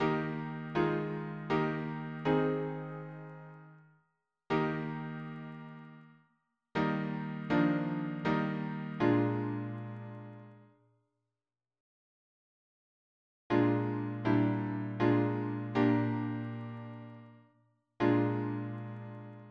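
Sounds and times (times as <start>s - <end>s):
piano harmony: 0.0s - 3.7s, 4.5s - 6.0s, 6.8s - 10.6s, 13.5s - 17.4s, 18.0s - 19.4s.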